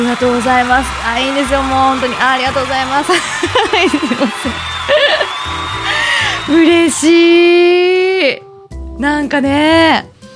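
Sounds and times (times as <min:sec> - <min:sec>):
group cheering: 0:00.0 - 0:07.3
speech: 0:00.1 - 0:05.7, 0:06.4 - 0:08.4, 0:09.0 - 0:10.1
laughter: 0:02.0 - 0:06.5.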